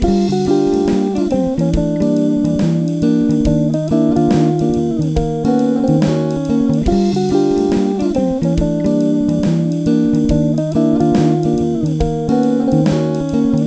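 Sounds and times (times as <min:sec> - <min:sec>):
music: 0:00.0 - 0:13.6.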